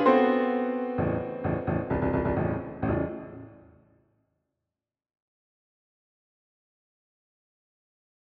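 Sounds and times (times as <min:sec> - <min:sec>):
piano four hands: 0:00.0 - 0:03.7.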